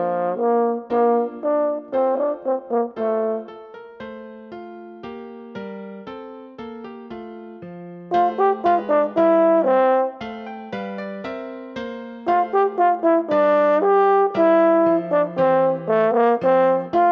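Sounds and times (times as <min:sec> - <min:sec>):
French horn solo: 0:00.0 - 0:03.5, 0:08.1 - 0:10.2, 0:12.3 - 0:17.1.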